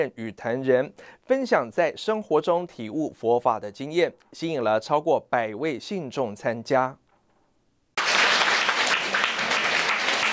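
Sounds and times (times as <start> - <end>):
speech: 0.0 - 7.0
audience applause welcoming speakers: 8.0 - 10.3.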